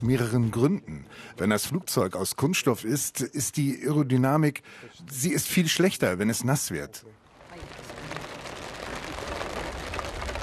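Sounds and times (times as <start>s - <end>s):
speech: 0.0s - 8.2s
steady rain pouring down: 7.2s - 10.4s.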